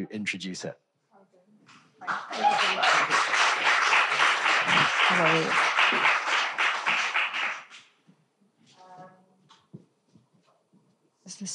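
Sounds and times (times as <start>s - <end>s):
speech: 0.0s - 0.8s, 4.7s - 6.2s, 11.4s - 11.5s
audience applause: 2.0s - 7.8s.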